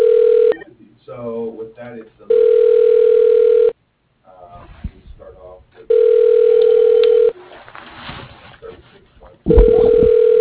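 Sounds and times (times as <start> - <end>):
telephone tone on a call to Pepco: 0.0 - 0.6, 2.3 - 3.8, 5.9 - 7.3, 9.5 - 10.3
low thumps: 9.5 - 10.3.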